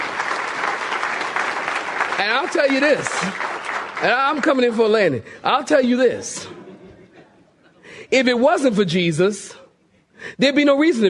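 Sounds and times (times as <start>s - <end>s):
audience clapping: 0.0s - 5.2s
speech: 2.2s - 6.6s, 8.1s - 9.6s, 10.2s - 11.0s.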